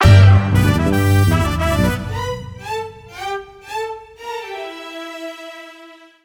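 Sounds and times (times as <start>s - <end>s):
disco ball stinger attack: 0.0s - 1.7s.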